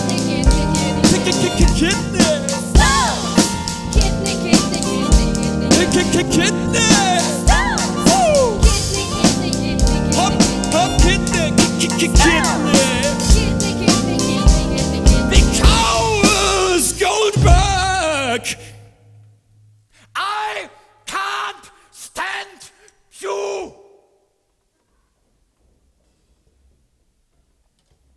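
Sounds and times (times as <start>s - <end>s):
rapping over a classical piece: 0.0s - 18.7s, 20.2s - 23.8s.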